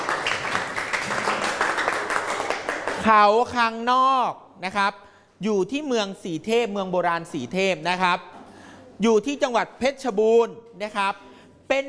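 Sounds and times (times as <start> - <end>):
students clapping for a classmate in a classroom: 0.0 - 3.2
speech: 3.0 - 8.3, 9.0 - 11.8.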